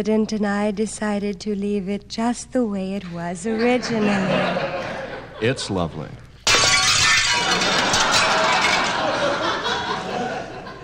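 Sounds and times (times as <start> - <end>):
speech: 0.0 - 4.8, 5.4 - 6.2
laughter: 3.5 - 6.1, 7.6 - 10.8
football crashing through glass window: 6.5 - 9.2
glass shards clattering and tinkling down: 6.5 - 9.2.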